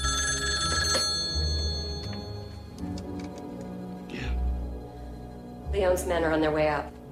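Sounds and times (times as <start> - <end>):
telephone ringing in a hotel room: 0.0 - 2.8
speech: 5.8 - 7.0.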